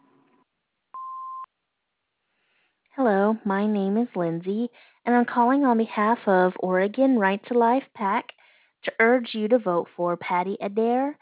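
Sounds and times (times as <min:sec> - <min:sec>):
voicemail message tone beep: 0:01.0 - 0:01.5
speech: 0:03.0 - 0:11.2.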